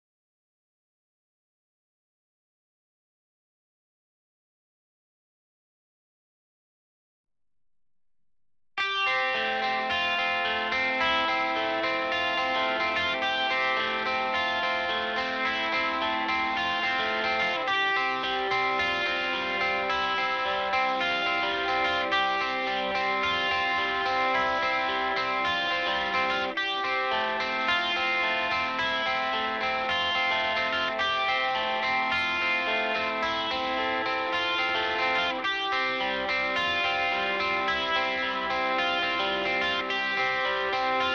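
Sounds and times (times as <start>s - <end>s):
guitar: 8.8s - 41.1s.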